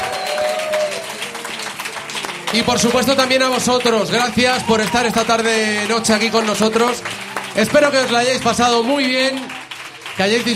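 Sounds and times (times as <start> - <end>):
audience applause: 0.0 - 10.5
speech: 2.5 - 9.6, 10.2 - 10.5.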